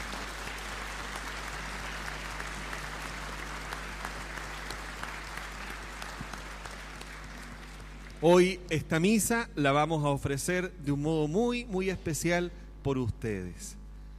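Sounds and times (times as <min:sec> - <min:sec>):
audience clapping in a church: 0:00.0 - 0:08.8
low hum: 0:00.0 - 0:14.1
speech: 0:08.2 - 0:13.8.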